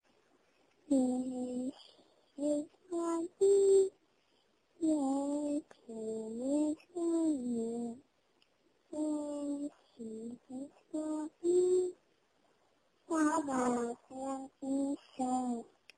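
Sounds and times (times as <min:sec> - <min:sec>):
person singing at bedtime: 0:00.9 - 0:01.8, 0:02.4 - 0:03.9, 0:04.8 - 0:08.0, 0:09.0 - 0:12.0, 0:13.1 - 0:15.7.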